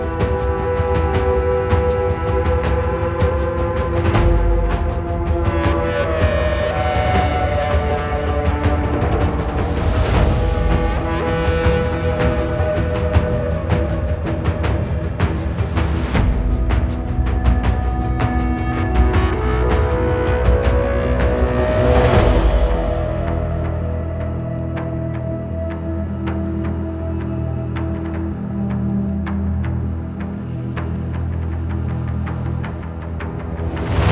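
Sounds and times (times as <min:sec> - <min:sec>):
low drums: 0:00.0 - 0:26.6, 0:32.6 - 0:34.1
engine percussion: 0:00.0 - 0:29.8, 0:30.6 - 0:34.1.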